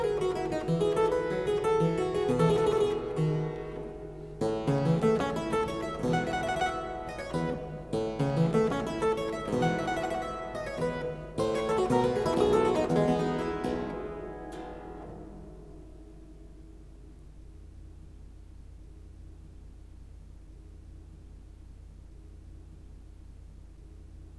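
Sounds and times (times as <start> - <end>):
allegro in F major keyboard piece: 0.0 - 16.8.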